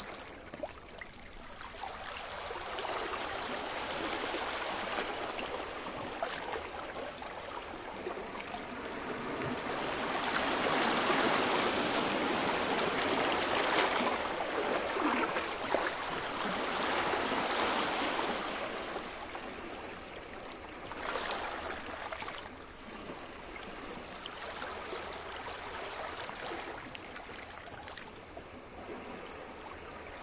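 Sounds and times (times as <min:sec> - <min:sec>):
sea waves at night in Cyprus: 0:00.0 - 0:30.2.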